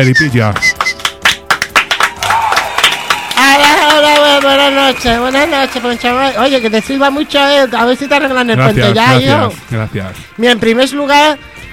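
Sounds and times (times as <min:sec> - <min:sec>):
speech: 0:00.0 - 0:01.0, 0:04.4 - 0:11.7
audience applause: 0:00.8 - 0:08.6.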